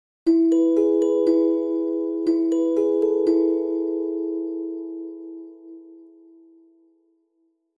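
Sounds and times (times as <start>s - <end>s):
ringtone: 0.3s - 5.8s.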